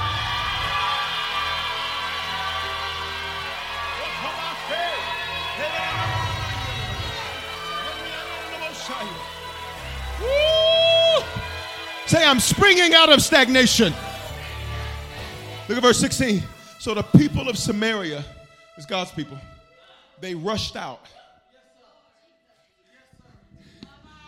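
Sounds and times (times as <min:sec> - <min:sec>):
whoops: 0:00.0 - 0:08.8, 0:10.0 - 0:12.1
audience shouting together on a count of three: 0:00.0 - 0:15.8
speech: 0:12.1 - 0:14.0, 0:15.7 - 0:19.5, 0:20.2 - 0:21.2.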